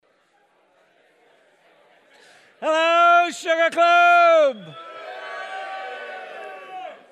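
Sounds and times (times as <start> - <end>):
speech: 2.6 - 4.9
live audience cheering: 3.5 - 7.1.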